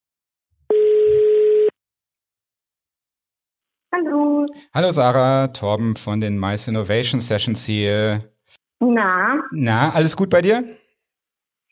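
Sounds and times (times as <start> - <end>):
telephone ringing tone: 0.7 - 1.8
speech: 4.0 - 10.8.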